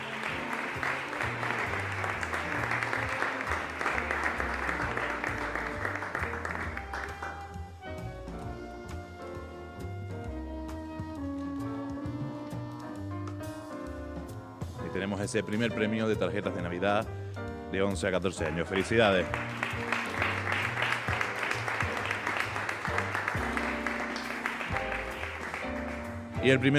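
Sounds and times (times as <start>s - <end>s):
crowd clapping: 0.0s - 7.8s, 18.3s - 26.4s
melodic music: 0.0s - 26.7s
speech: 15.0s - 19.6s, 26.4s - 26.7s.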